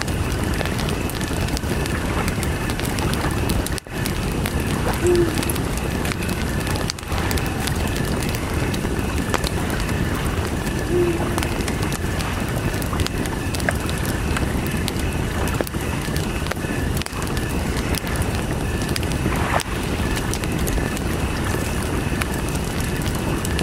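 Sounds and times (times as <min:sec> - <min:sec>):
campfire by the lake: 0:00.0 - 0:23.6
crickets chirping: 0:00.0 - 0:23.6
lake water: 0:00.0 - 0:23.6
owls hooting: 0:05.0 - 0:05.6, 0:10.8 - 0:11.8.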